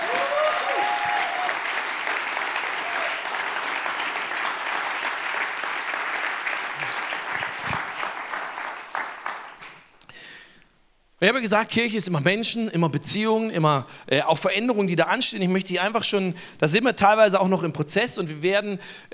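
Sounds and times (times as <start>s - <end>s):
big round of applause from audience: 0.0s - 10.0s
speech: 11.2s - 19.1s.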